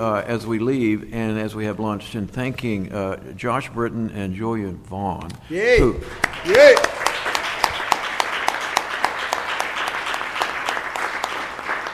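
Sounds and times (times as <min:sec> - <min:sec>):
speech: 0:00.0 - 0:06.9
conference audience standing ovation applause: 0:06.0 - 0:11.9.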